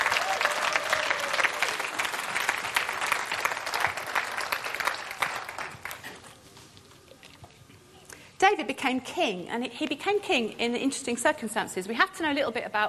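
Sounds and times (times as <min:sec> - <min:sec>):
audience applauding volunteers: 0:00.0 - 0:06.3
speech: 0:08.5 - 0:12.8.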